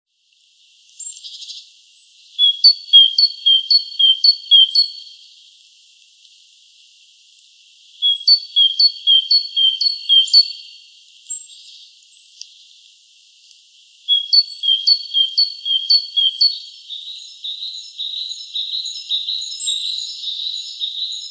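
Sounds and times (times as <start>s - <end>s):
other birds' twittering: 2.4s - 5.0s, 8.0s - 10.9s, 14.1s - 21.2s
Great tit ringing two-note phrases: 2.4s - 5.1s, 8.0s - 10.9s, 14.1s - 21.2s.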